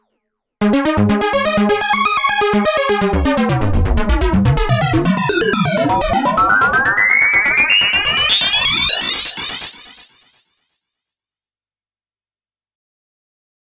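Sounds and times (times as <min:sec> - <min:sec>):
Korg arpeggio synth: 0:00.6 - 0:09.0.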